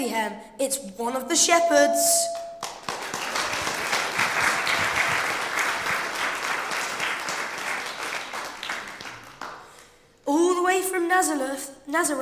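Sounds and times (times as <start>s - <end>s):
speech: 0.0s - 2.5s, 10.8s - 12.2s
audience applause welcoming a performer at a nativity-themed team game event: 2.6s - 9.7s.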